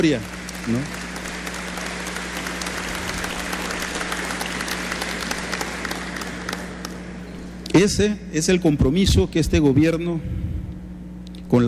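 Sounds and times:
speech: 0:00.0 - 0:01.0, 0:07.8 - 0:10.4
audience applause: 0:00.0 - 0:07.2.

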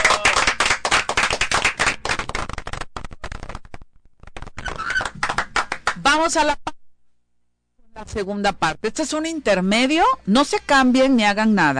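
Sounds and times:
audience applause at a live show: 0:00.0 - 0:02.9, 0:04.9 - 0:06.0
speech: 0:06.0 - 0:06.6, 0:08.0 - 0:11.7.

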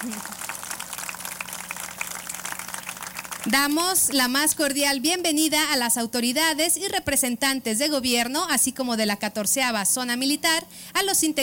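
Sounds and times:
audience applause: 0:00.0 - 0:04.2
speech: 0:03.4 - 0:11.4.

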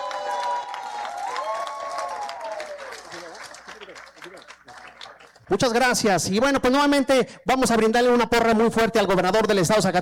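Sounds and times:
audience applause: 0:00.0 - 0:05.8
speech: 0:05.5 - 0:10.0.

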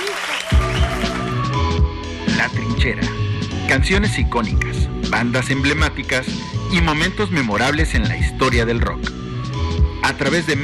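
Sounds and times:
loud audience applause: 0:00.0 - 0:01.6
speech: 0:02.4 - 0:09.1, 0:10.0 - 0:10.6.

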